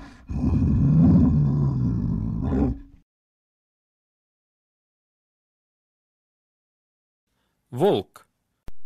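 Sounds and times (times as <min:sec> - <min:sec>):
brown bear roaring: 0:00.0 - 0:03.0
speech: 0:07.7 - 0:08.2.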